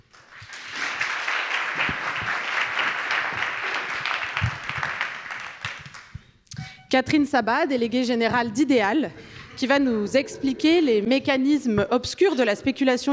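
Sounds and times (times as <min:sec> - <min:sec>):
audience applause: 0:00.0 - 0:06.2
speech: 0:06.9 - 0:13.1.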